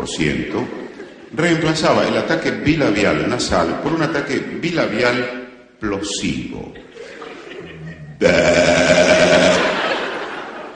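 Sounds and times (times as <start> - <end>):
speech: 0.0 - 6.9, 8.2 - 9.6
laughter: 0.7 - 1.5, 6.7 - 10.7
person imitating a sheep's bleat: 7.8 - 9.8.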